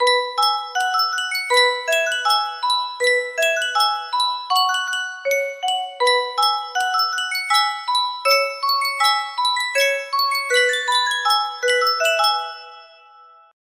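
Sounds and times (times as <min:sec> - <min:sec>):
Sankyo music box: 0:00.0 - 0:13.6.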